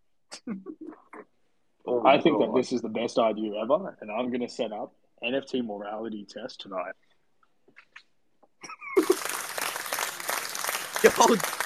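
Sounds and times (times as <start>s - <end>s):
speech: 0.4s - 1.0s, 1.8s - 7.0s, 11.0s - 11.6s
soundboard applause effect: 9.0s - 11.6s.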